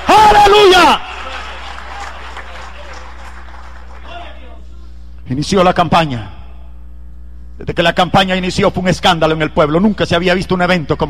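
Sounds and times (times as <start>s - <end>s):
audience applause: 0.0s - 4.5s
speech: 5.3s - 6.4s, 7.6s - 11.0s.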